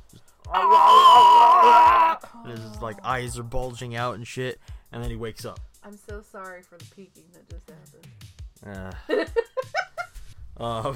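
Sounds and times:
speech: 0.1 - 9.8, 10.6 - 10.9
man screaming: 0.5 - 2.3.

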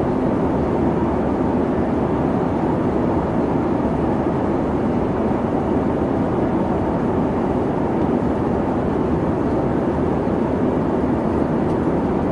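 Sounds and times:
airplane cabin white noise on board: 0.0 - 12.3.

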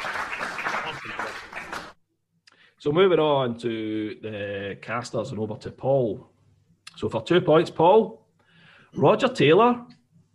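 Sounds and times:
belated clapping: 0.0 - 2.0
speech: 2.8 - 6.3, 7.0 - 8.2, 8.9 - 10.0.

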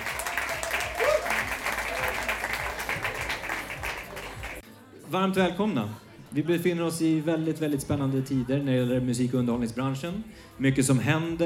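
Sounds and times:
audience applause: 0.0 - 4.6
faint murmur of voices: 0.0 - 11.4
speech: 5.1 - 11.4.

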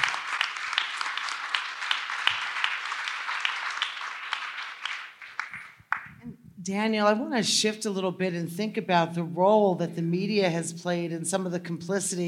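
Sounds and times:
round of applause: 0.0 - 6.2
speech: 6.6 - 12.2.

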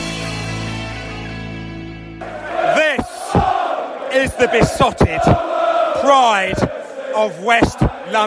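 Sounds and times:
Brentford fans cheering in stadium: 2.0 - 8.2
speech: 4.2 - 8.2.

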